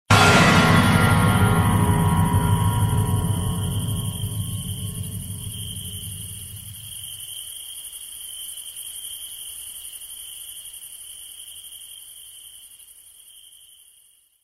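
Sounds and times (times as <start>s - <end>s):
wild sound of an out-of-tune upright piano: 0.1s - 7.1s.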